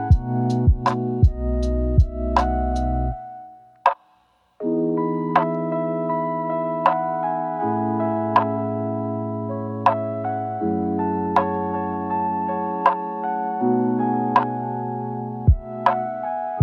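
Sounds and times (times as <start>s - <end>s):
chill lofi music: 0.0s - 4.0s, 4.6s - 16.6s.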